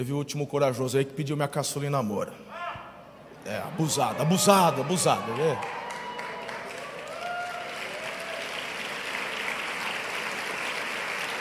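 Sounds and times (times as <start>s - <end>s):
speech: 0.0s - 2.6s, 3.4s - 5.8s
applause from a group: 4.5s - 11.3s.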